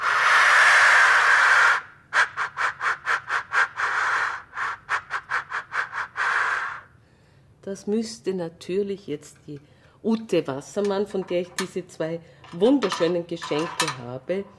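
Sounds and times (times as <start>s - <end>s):
black grouse decoy call being blown: 0.0s - 6.9s
speech: 7.7s - 14.5s.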